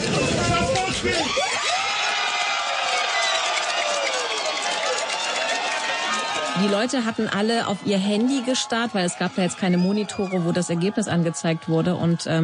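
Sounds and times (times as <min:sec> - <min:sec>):
large crowd cheering and shouting: 0:00.0 - 0:12.4
speech: 0:06.6 - 0:12.4.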